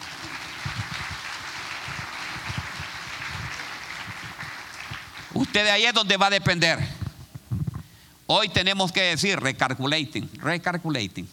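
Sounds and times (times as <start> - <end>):
audience applause: 0.0 - 5.6
speech: 5.4 - 6.9, 8.3 - 11.3.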